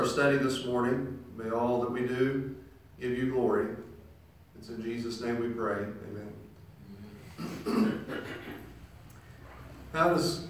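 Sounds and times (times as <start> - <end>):
speech: 0.0 - 3.9, 4.6 - 6.4, 7.4 - 8.7, 9.9 - 10.4
preacher clearing his throat: 7.3 - 8.8.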